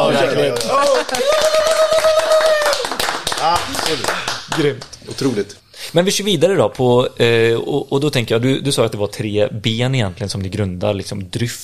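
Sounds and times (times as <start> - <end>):
speech: 0.1 - 1.5, 3.5 - 11.6
applause: 0.4 - 5.0.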